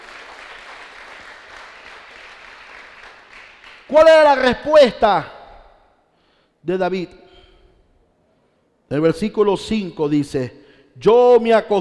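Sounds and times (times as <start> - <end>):
audience applauding: 0.0 - 3.9
speech: 3.9 - 5.3, 6.6 - 7.2, 8.9 - 11.7.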